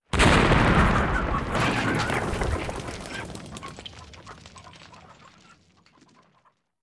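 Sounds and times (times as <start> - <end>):
farm explosion: 0.0 - 5.3.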